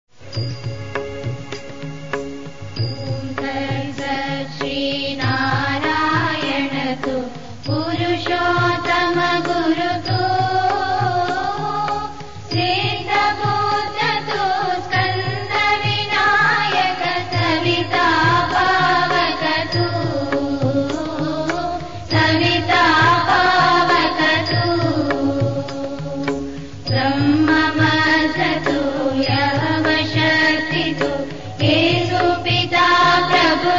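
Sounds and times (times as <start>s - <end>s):
Hindu chant prayer: 3.0s - 33.7s.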